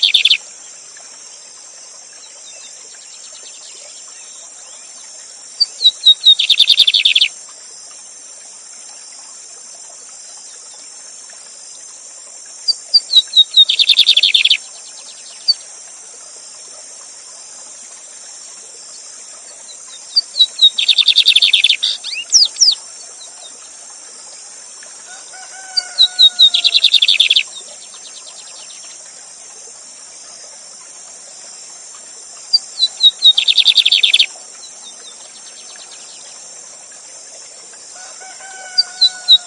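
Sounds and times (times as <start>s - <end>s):
Lined seedeater song: 0.0s - 0.4s, 5.6s - 7.3s, 12.7s - 14.6s, 20.1s - 22.8s, 25.8s - 27.5s, 32.6s - 34.3s, 38.8s - 39.4s
continuous hiss of falling water: 0.0s - 39.4s.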